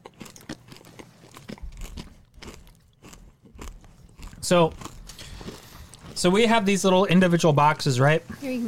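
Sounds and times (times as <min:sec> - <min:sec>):
chewing crunchy grape Nerds candy: 0:00.0 - 0:06.6
speech: 0:04.4 - 0:04.8, 0:06.2 - 0:08.6.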